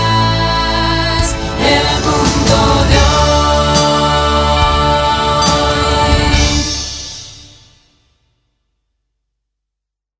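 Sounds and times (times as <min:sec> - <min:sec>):
anthem music: 0:00.1 - 0:07.5.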